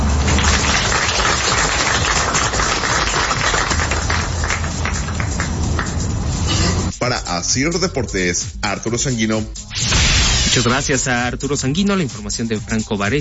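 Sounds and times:
crowd applause: 0:00.1 - 0:06.1
speech: 0:07.1 - 0:09.9, 0:10.5 - 0:13.1.

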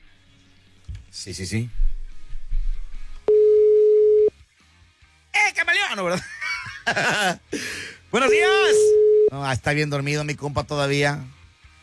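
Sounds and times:
speech: 0:01.2 - 0:01.8, 0:06.0 - 0:06.3, 0:06.9 - 0:11.4
telephone tone while a call is being dialed: 0:03.3 - 0:04.3, 0:08.7 - 0:09.3
laughter: 0:06.1 - 0:07.9.

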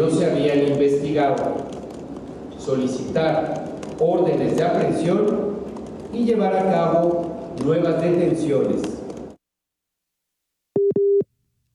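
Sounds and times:
speech: 0:00.0 - 0:01.8, 0:02.6 - 0:05.5, 0:06.1 - 0:09.0
telephone busy tone after a dropped call: 0:10.8 - 0:11.2.

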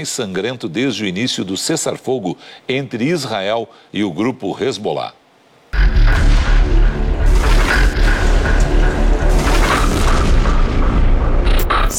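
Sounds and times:
speech: 0:00.0 - 0:05.2
heavy bombing explosions: 0:05.8 - 0:11.9.

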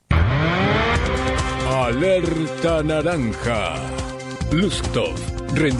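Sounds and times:
race car engines starting at the start of a race: 0:00.1 - 0:01.7
speech: 0:01.9 - 0:05.7.

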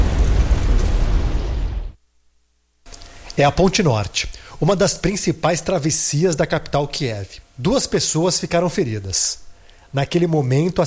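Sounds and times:
drone strike explosion on a bridge: 0:00.0 - 0:02.0
speech: 0:03.4 - 0:10.8.

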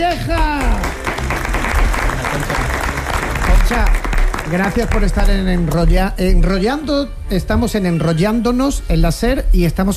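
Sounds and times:
studio audience applause welcoming a guest: 0:00.0 - 0:05.9
speech: 0:03.7 - 0:09.9.

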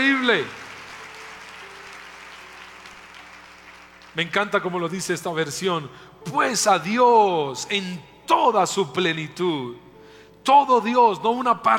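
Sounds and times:
audience applause: 0:00.0 - 0:04.5
speech: 0:00.1 - 0:00.6, 0:04.2 - 0:11.7.

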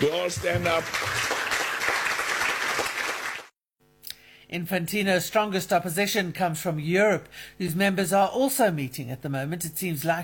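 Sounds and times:
speech: 0:00.0 - 0:01.3, 0:04.5 - 0:10.2
audience clapping hands: 0:00.0 - 0:03.6.

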